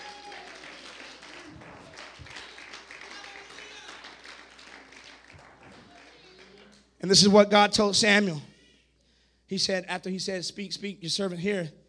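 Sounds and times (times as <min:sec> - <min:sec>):
audience clapping hands: 0:00.0 - 0:07.0
speech: 0:07.0 - 0:08.5, 0:09.5 - 0:11.8.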